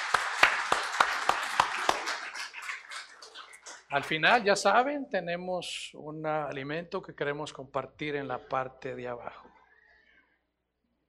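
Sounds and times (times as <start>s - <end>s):
audience applause: 0.0s - 3.3s
speech: 3.9s - 9.5s.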